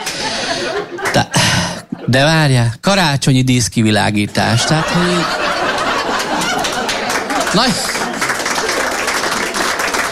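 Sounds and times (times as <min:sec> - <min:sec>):
laughter: 0:00.0 - 0:02.3, 0:04.4 - 0:10.1
speech: 0:00.8 - 0:01.4, 0:02.1 - 0:05.5, 0:07.5 - 0:08.0
audience applause at a humorous monologue: 0:05.0 - 0:10.1.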